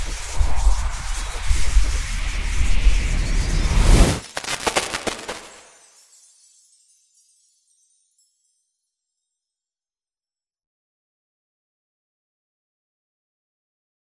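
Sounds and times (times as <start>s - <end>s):
sci-fi magic full heal effect: 0.2s - 5.9s.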